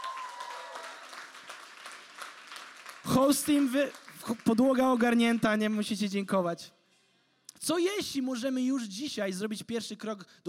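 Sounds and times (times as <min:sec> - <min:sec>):
crowd applauding: 0:00.0 - 0:05.6
speech: 0:03.1 - 0:06.8, 0:07.6 - 0:10.4.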